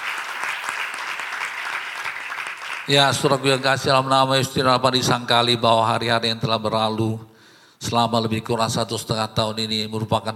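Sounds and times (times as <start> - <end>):
crowd clapping: 0.0 - 4.2
speech: 2.9 - 10.3.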